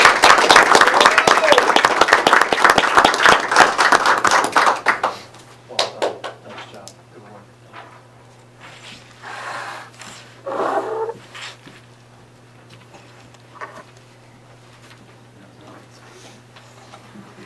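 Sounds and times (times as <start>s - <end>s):
round of applause: 0.0s - 6.4s.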